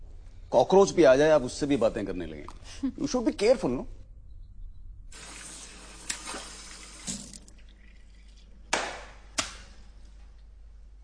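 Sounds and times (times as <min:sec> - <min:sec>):
speech: 0:00.5 - 0:04.0
tap water running: 0:05.2 - 0:08.5.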